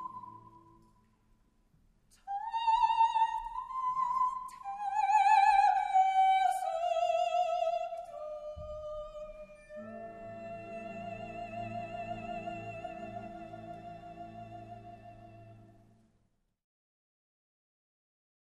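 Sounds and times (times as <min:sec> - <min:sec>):
soprano singing solo: 0:02.2 - 0:15.4.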